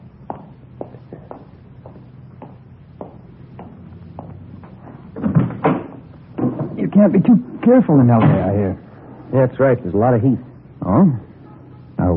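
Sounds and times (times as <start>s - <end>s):
door opening clunk and rattle: 5.1s - 6.9s, 8.2s - 8.6s
speech: 7.0s - 11.3s, 12.0s - 12.1s.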